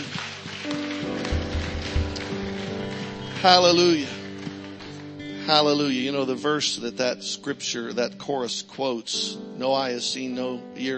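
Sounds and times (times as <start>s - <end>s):
audience clapping hands: 0.0s - 5.3s
sustained organ-like chords: 0.7s - 7.1s
deep thumping beats: 1.1s - 3.6s
speech: 3.4s - 4.2s, 5.5s - 10.9s.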